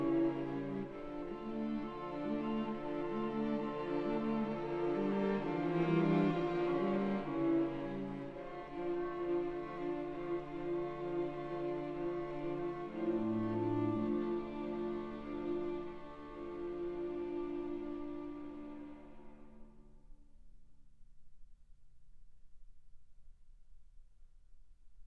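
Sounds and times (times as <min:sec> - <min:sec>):
string quartet playing: 0:00.0 - 0:19.7.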